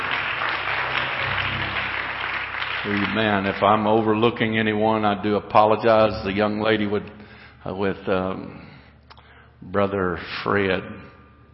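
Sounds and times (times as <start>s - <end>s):
congregation clapping at a Wednesday night church service: 0.0s - 4.4s
speech: 2.8s - 8.7s, 9.6s - 11.1s.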